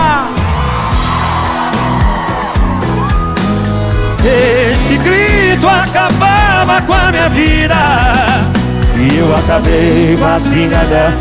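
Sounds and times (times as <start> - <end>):
crowd of women screaming and cheering: 0.0 - 6.9
pounding live music with heavy bass beats: 0.0 - 11.1
speech: 6.7 - 11.1.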